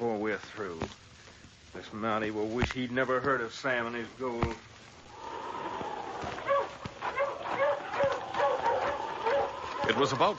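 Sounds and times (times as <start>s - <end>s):
speech: 0.0s - 4.9s, 9.9s - 10.3s
steady hissing background: 0.0s - 10.3s
sled dogs barking and yipping: 5.2s - 10.3s.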